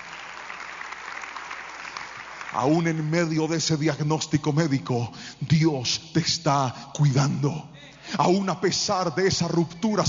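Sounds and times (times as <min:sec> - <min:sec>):
audience applauding: 0:00.0 - 0:03.3
speech: 0:02.6 - 0:10.0.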